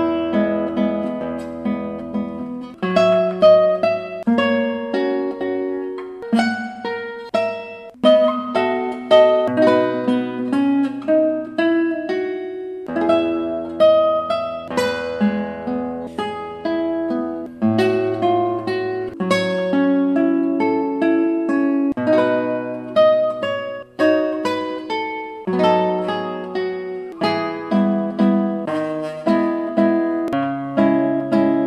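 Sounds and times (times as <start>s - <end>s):
guitar: 0.0s - 31.6s.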